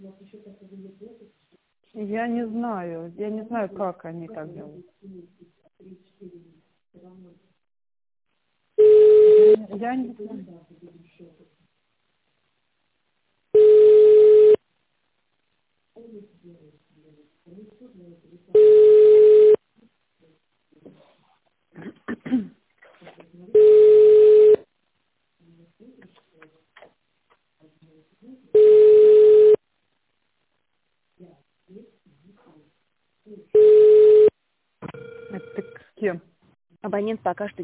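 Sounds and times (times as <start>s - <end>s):
speech: 2.0s - 5.4s, 9.4s - 11.3s, 36.0s - 37.6s
telephone ringback tone: 8.8s - 9.6s, 13.6s - 14.6s, 18.6s - 19.6s, 23.6s - 24.6s, 28.6s - 29.6s, 33.6s - 34.3s, 34.9s - 35.8s.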